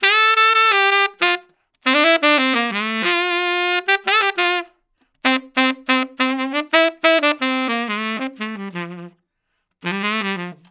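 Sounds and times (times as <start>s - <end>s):
tenor sax melody: 0.0s - 10.6s.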